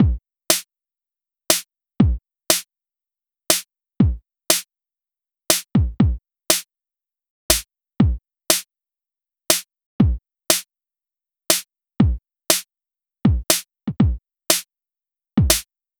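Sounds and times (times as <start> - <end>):
chillout kick and snare drum beat: 0.0 - 0.6, 1.5 - 2.6, 3.5 - 4.6, 5.5 - 6.6, 7.5 - 8.6, 9.5 - 10.6, 11.5 - 12.7, 13.3 - 14.6, 15.4 - 15.7.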